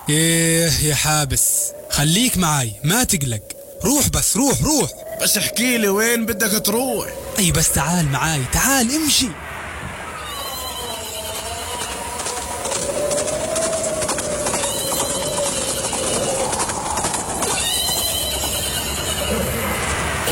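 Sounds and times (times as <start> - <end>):
speech: 0.1 - 9.5
horse whinnying: 10.2 - 19.8
hooves of two riders' horses approaching: 10.5 - 19.5.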